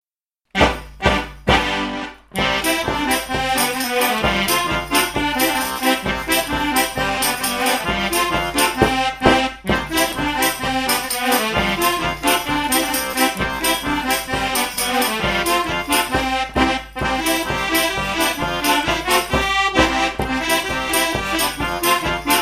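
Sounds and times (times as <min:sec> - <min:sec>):
polka music: 0:00.5 - 0:22.3.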